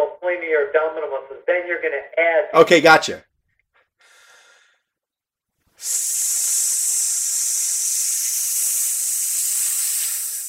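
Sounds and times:
speech: 0.4s - 3.3s, 5.8s - 6.6s
breathy inhale: 4.0s - 5.0s, 5.8s - 10.4s
hiss of air forced out through the teeth: 5.7s - 10.4s.

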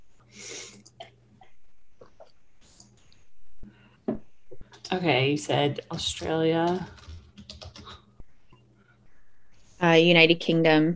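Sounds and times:
speech: 4.9s - 7.0s, 9.8s - 10.9s
typing a country name on a computer keyboard: 5.7s - 8.1s.

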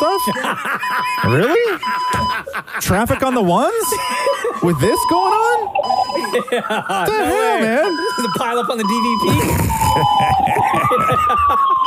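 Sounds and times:
fire truck siren: 0.0s - 2.4s, 3.5s - 11.8s
laughter: 0.0s - 11.8s
speech: 0.2s - 11.8s.

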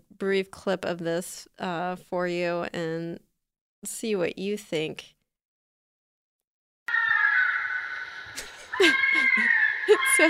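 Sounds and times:
speech: 0.2s - 5.2s, 8.8s - 10.2s
fisher screaming: 6.9s - 10.2s.

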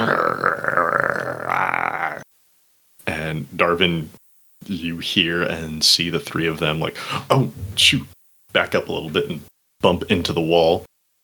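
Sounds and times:
person imitating a menacing growl: 0.0s - 2.3s
speech: 3.3s - 11.2s.

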